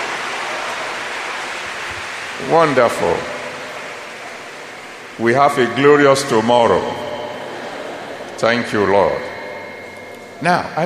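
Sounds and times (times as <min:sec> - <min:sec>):
laughter: 0:00.0 - 0:10.7
audience applauding: 0:00.0 - 0:10.8
speech: 0:02.4 - 0:03.3, 0:05.2 - 0:07.1, 0:08.4 - 0:09.3, 0:10.4 - 0:10.8.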